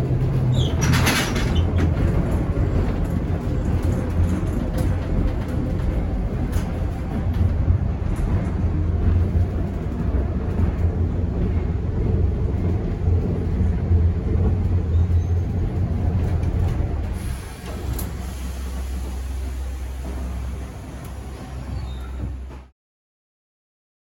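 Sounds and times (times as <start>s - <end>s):
funicular tram: 0.0s - 22.8s.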